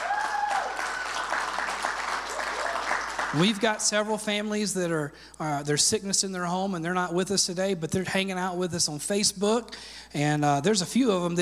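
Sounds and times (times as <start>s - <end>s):
church congregation applause: 0.0s - 3.7s
speech: 3.3s - 11.4s.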